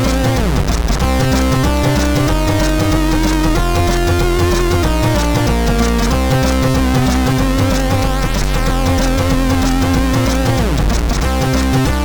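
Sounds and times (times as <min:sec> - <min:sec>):
chiptune music from a MOS6581R3 sound chip: 0:00.0 - 0:12.0.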